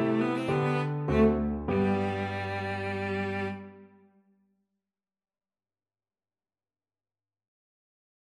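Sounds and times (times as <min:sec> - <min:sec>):
cello playing a minuet: 0:00.0 - 0:03.9.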